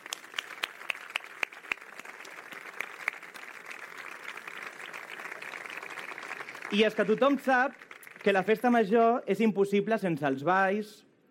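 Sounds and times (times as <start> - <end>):
audience applause: 0.0 - 9.0
speech: 6.7 - 11.1.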